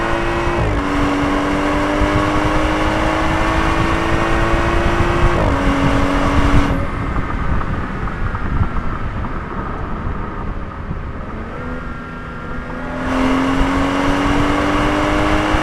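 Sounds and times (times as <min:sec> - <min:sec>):
BMW 335i M Sport car engine: 0:00.0 - 0:15.6.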